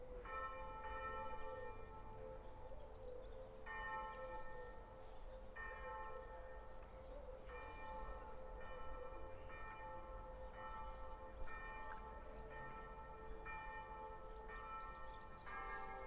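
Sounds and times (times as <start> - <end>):
Sunday church bells ringing: 0.2 - 16.0.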